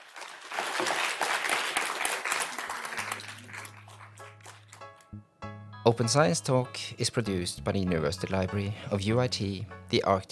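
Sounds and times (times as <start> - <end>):
audience applause for the panel: 0.0 - 5.0
speech: 5.9 - 10.3.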